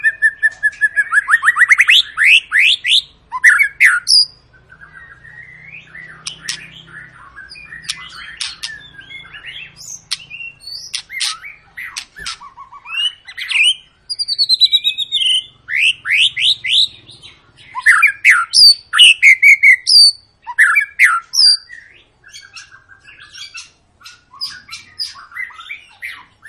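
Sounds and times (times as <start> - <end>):
White-rumped shama song: 0.0 - 11.7, 12.4 - 17.0, 17.6 - 26.4.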